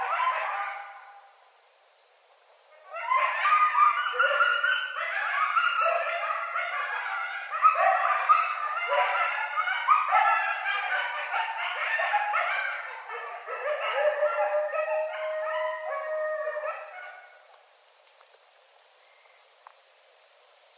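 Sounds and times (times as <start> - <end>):
coyotes yipping and howling together: 0.0 - 1.5, 2.7 - 17.5.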